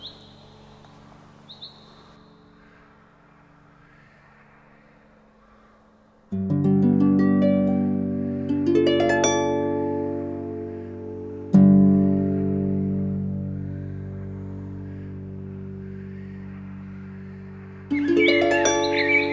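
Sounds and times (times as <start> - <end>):
classic harp playing in G major, C minor and D minor: 6.4 - 19.3.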